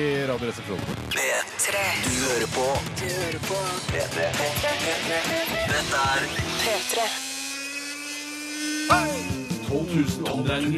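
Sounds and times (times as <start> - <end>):
speech: 0.0 - 7.3, 8.9 - 10.7
hand blender motor whining: 4.7 - 9.6.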